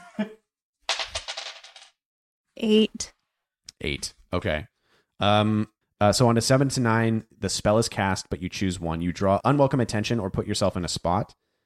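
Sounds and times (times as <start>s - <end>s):
speech: 0.2s - 0.4s, 2.6s - 3.2s, 3.8s - 11.4s
two six-sided dice clattering on the floor: 0.9s - 2.0s.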